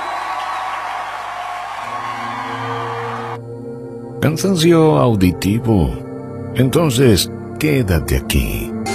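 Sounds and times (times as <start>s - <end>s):
audience applauding and cheering loudly: 0.0s - 3.4s
speech: 4.2s - 6.0s, 6.6s - 8.8s.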